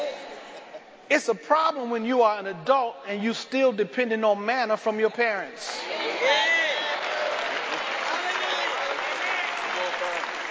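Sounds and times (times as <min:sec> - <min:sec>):
speech: 0:01.1 - 0:06.4
audience clapping: 0:05.6 - 0:10.5.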